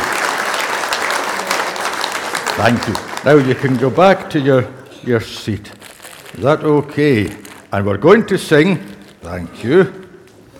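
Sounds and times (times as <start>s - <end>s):
round of applause: 0.0s - 4.2s
speech: 2.6s - 5.8s, 6.4s - 10.0s.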